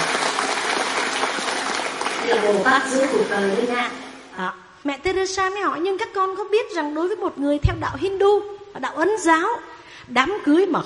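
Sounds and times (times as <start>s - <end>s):
audience applause: 0.0s - 4.3s
speech: 2.3s - 10.8s.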